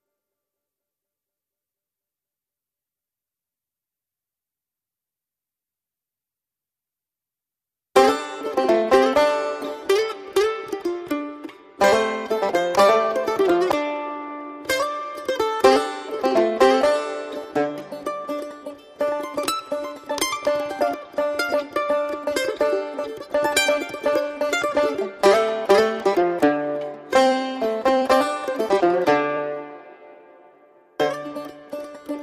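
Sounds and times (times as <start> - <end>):
banjo: 8.0 - 32.2
mandolin: 8.0 - 32.2.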